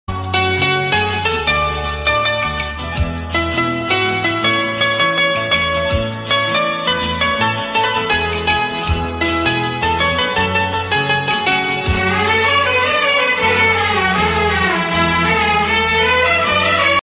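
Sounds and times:
instrumental music: 0.1s - 17.0s.

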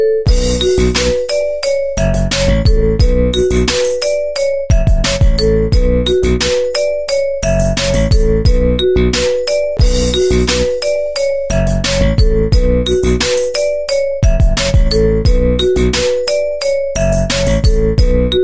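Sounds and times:
ringtones: 0.2s - 18.4s.

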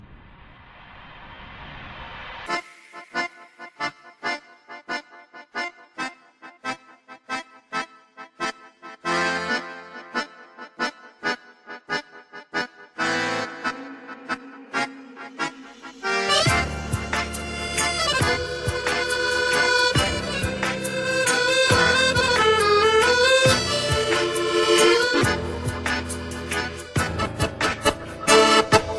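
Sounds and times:
tango music: 6.6s - 28.9s.

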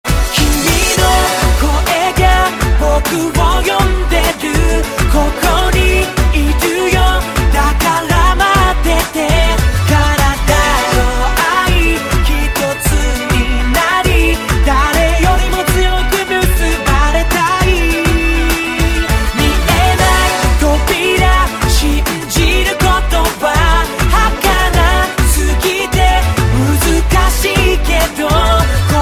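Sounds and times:
chorus singing: 0.3s - 29.0s.

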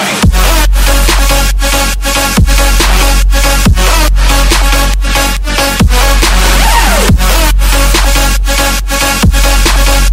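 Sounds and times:
trap beat: 0.0s - 10.1s.

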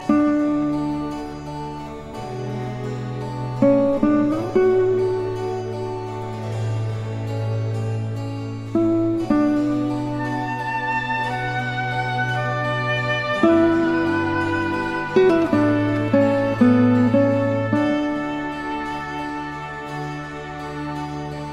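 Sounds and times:
guitar playing: 0.0s - 21.5s.

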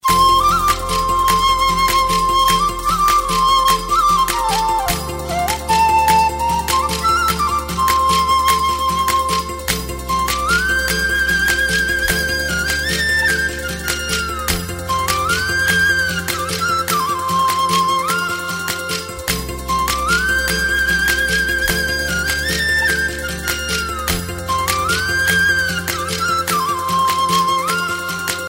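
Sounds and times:
joyful flute melody: 0.0s - 28.4s.

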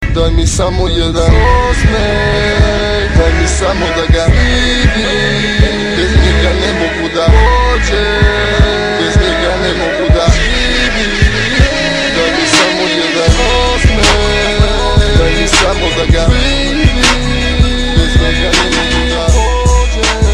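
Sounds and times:
Serbian rapping: 0.0s - 20.3s.

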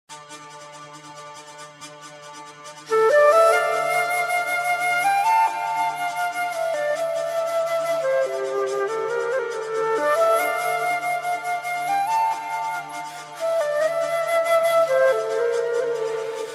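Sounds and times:
flute: 0.1s - 16.5s.

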